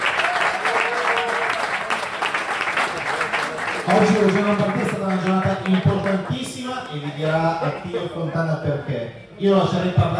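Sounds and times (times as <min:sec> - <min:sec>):
audience applause: 0:00.0 - 0:06.4
speech: 0:03.9 - 0:10.1.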